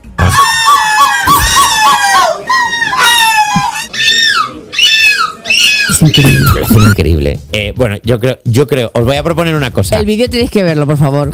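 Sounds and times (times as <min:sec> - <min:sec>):
person imitating a seagull call: 0:00.2 - 0:07.0
speech: 0:06.1 - 0:11.3.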